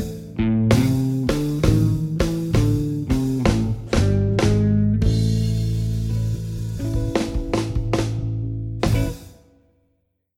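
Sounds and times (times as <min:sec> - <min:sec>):
Chicago blues style drumming: 0:00.0 - 0:09.5.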